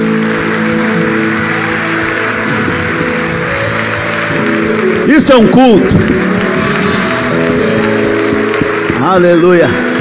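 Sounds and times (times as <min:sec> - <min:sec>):
applause from a church audience: 0:00.0 - 0:09.9
speech: 0:05.2 - 0:06.2, 0:09.1 - 0:09.8.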